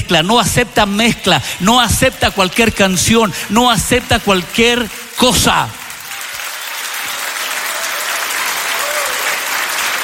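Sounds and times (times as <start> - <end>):
speech: 0.1 - 5.8
audience applauding: 2.3 - 10.0.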